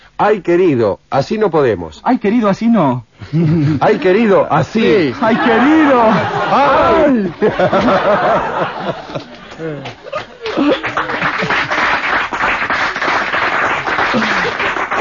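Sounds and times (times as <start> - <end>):
speech: 0.2 - 10.9
voices and laughter: 4.8 - 11.4
audience applause: 5.2 - 15.0.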